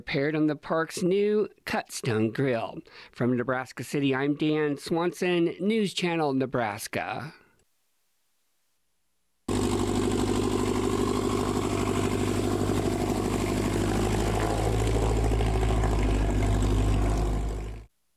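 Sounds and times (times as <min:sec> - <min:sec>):
speech: 0:00.0 - 0:07.4
small propeller airplane engines buzzing: 0:09.5 - 0:17.9.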